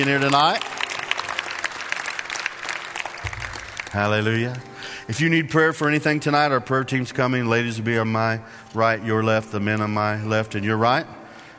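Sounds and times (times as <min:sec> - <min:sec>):
speech: 0:00.0 - 0:00.7, 0:03.9 - 0:11.2
church audience clapping to welcome first-time guests: 0:00.0 - 0:04.7.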